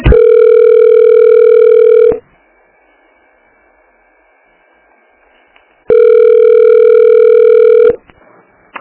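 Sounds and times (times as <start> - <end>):
telephone dial tone while a call is being transferred: 0.1 - 2.2, 5.9 - 8.0.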